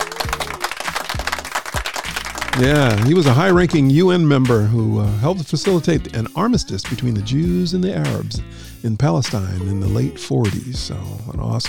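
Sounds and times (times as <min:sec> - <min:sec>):
audience applause: 0:00.0 - 0:03.7
speech: 0:02.6 - 0:11.6.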